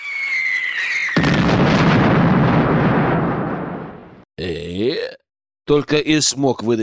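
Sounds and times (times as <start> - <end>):
high whistling tone gliding downward: 0.0 - 1.2
artillery shell explosion: 0.3 - 4.2
speech: 4.4 - 6.8.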